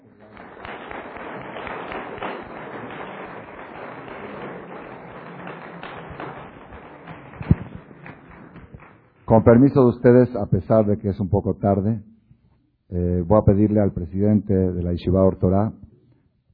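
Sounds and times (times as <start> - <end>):
audience applause: 0.0 - 9.0
speech: 9.3 - 12.1, 12.9 - 15.8.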